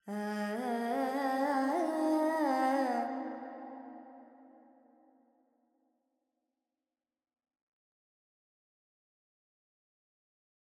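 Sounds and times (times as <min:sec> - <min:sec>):
woman singing Carnatic pentatonic alap in G: 0:00.0 - 0:03.6.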